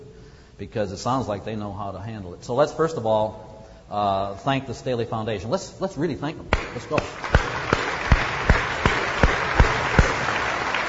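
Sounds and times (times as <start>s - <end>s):
speech: 0.6s - 7.4s
audience applause: 6.6s - 10.8s.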